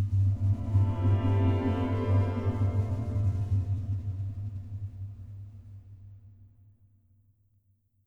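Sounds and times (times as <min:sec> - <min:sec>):
violin: 0:00.1 - 0:05.6.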